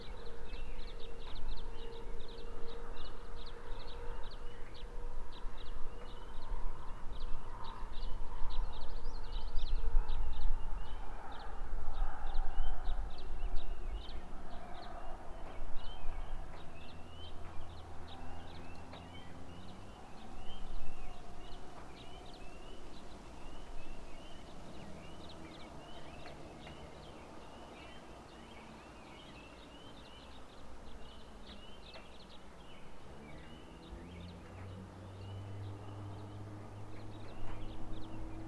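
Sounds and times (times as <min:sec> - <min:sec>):
birds singing at dawn: 0:00.0 - 0:38.4.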